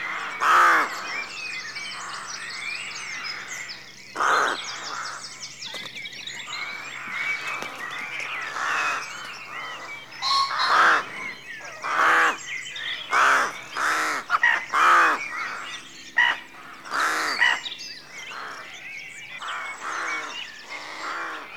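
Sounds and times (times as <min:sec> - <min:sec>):
rook cawing at a rookery at dawn in a rural setting: 0:00.0 - 0:01.3, 0:03.0 - 0:05.3, 0:06.5 - 0:18.8, 0:19.4 - 0:21.5.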